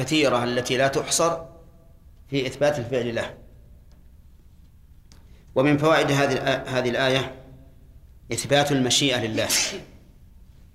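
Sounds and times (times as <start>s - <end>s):
speech: 0.0s - 1.6s, 2.3s - 3.4s, 5.6s - 7.4s, 8.3s - 9.9s
faint low hum: 0.0s - 10.7s
sneeze: 9.3s - 10.1s.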